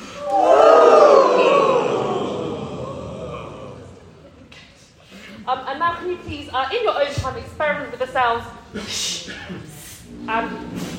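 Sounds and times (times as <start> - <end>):
group of people yawning at higher pitch: 0.0 - 4.4
speech: 6.2 - 9.2, 10.3 - 10.8.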